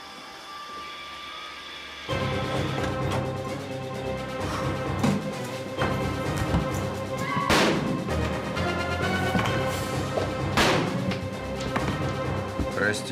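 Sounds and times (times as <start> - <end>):
dramatic musical score: 2.0 - 13.1
pistol gunshots in a film scene: 10.6 - 11.1.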